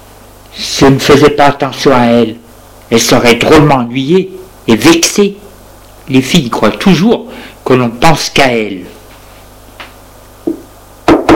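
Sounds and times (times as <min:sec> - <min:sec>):
speech: 0:00.6 - 0:05.4, 0:06.1 - 0:08.9
knocking on a door: 0:10.5 - 0:11.3.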